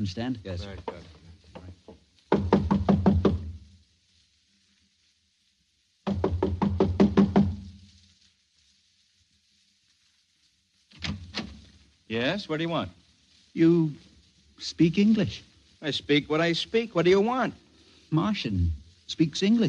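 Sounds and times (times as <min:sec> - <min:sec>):
speech: 0:00.0 - 0:01.1, 0:12.1 - 0:13.0, 0:13.6 - 0:19.6
knocking on a door: 0:00.7 - 0:03.6, 0:06.1 - 0:07.6.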